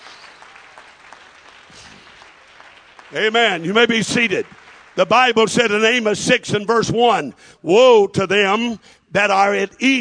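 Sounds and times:
audience clapping hands: 0.0 - 6.2
speech: 3.1 - 10.0.

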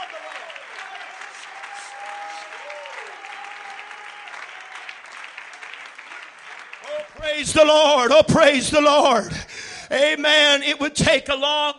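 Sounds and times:
church congregation clapping hands in praise of the Lord: 0.0 - 9.2
speech: 7.2 - 11.7.

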